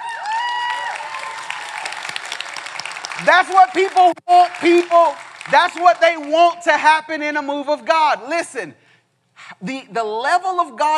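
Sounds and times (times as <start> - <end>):
audience clapping: 0.0 - 6.8
speech: 3.2 - 8.8, 9.6 - 10.9.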